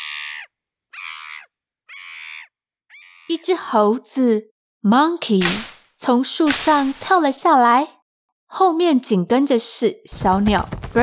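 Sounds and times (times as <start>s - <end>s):
shrill scream from the woods: 0.0s - 3.3s
speech: 3.3s - 11.0s.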